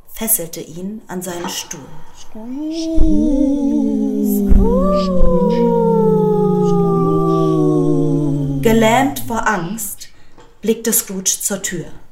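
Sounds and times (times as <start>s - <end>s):
speech: 0.2s - 5.9s, 8.7s - 10.0s, 10.6s - 12.0s
dull eerie groaning: 2.4s - 9.9s.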